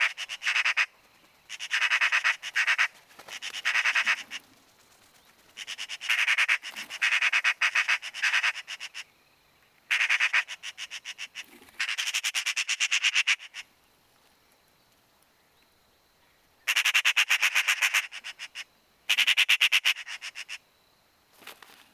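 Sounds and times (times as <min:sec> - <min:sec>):
Eurasian magpie Pica pica rattling chatter: 0:00.0 - 0:00.9, 0:01.5 - 0:09.0, 0:09.9 - 0:13.6, 0:16.7 - 0:20.6.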